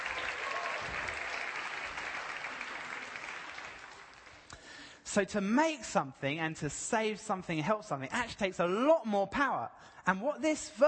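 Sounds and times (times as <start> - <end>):
audience applause: 0.0 - 4.5
speech: 5.1 - 10.8.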